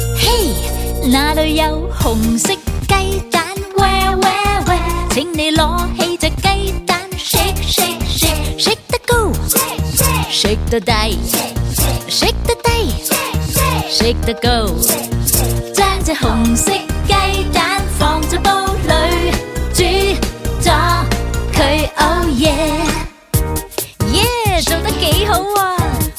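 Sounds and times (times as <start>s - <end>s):
positive psychology children's song: 0.2s - 23.3s, 24.1s - 26.0s.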